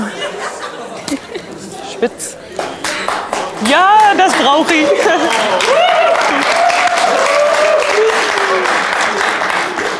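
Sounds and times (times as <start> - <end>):
laughter: 0.0 - 8.8
speech: 2.0 - 2.4, 3.6 - 7.3
audience applause: 2.3 - 9.9.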